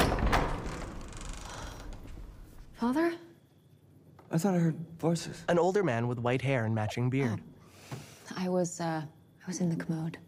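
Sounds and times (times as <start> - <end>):
bedroom door opening: 0.0 - 2.6
speech: 2.8 - 3.3, 4.3 - 10.2.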